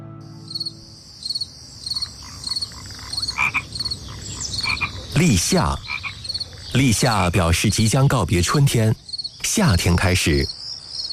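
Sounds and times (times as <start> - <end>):
high-pitched chorus of chirping insects: 0.2 - 11.1
frogs croaking: 0.4 - 11.1
speech: 5.2 - 5.9, 6.8 - 10.6.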